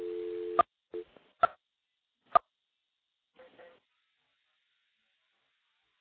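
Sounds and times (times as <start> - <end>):
buzzing dial tone from an electromechanical telephone switch: 0.0 - 0.6.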